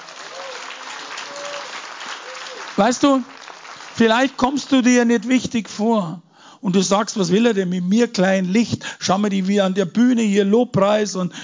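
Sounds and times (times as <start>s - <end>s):
audience applause: 0.0s - 4.6s
speech: 2.8s - 3.4s, 4.0s - 11.4s.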